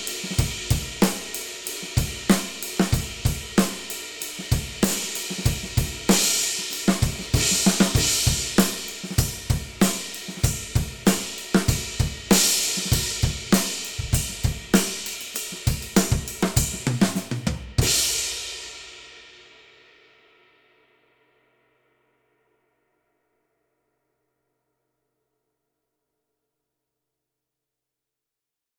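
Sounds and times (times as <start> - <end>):
ride cymbal: 0.0 - 17.2.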